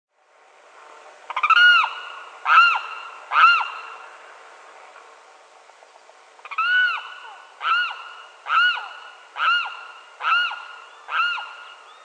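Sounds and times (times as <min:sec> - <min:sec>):
Limpkin Aramus guarauna wailing cry: 0:01.3 - 0:04.0, 0:06.4 - 0:12.0.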